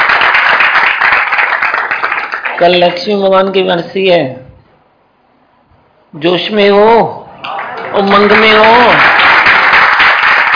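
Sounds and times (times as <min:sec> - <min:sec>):
group of people clapping for their teacher: 0:00.0 - 0:03.0, 0:07.4 - 0:10.5
speech: 0:02.6 - 0:04.4, 0:06.1 - 0:07.2, 0:07.9 - 0:09.2.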